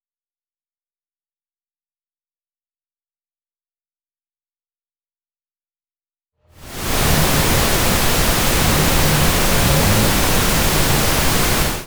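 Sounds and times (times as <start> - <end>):
engine revving: 6.6 - 11.8.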